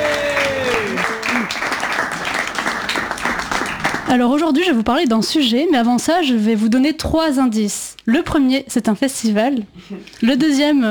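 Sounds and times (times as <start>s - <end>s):
audience applause for female comedian starting her comedy segment: 0.0s - 4.2s
speech: 4.1s - 10.8s.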